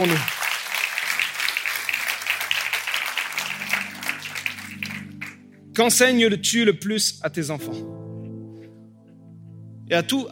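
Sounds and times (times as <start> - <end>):
speech: 0.0 - 0.4, 5.8 - 8.0, 9.9 - 10.3
audience applause: 0.0 - 5.4.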